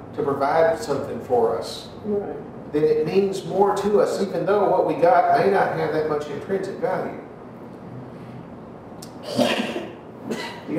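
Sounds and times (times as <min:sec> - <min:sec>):
speech: 0:00.2 - 0:07.3, 0:09.3 - 0:09.6
sneeze: 0:09.2 - 0:10.7.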